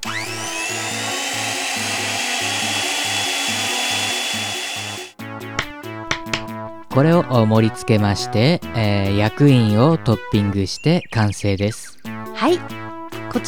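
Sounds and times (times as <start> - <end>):
kitchen blender whirring and roaring: 0.0 - 5.1
speech: 7.0 - 13.4.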